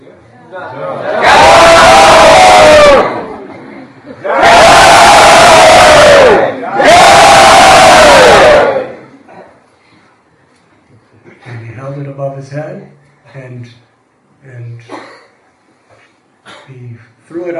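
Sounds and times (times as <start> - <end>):
speech: 0.5 - 1.3, 17.3 - 17.5
large crowd in a hall shouting in unison: 1.0 - 3.3, 4.2 - 9.1.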